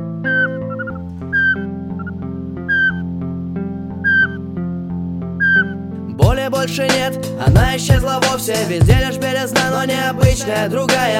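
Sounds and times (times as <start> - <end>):
little owls calling: 0.2 - 3.0, 4.0 - 4.4, 5.4 - 5.8
speech: 6.6 - 11.1.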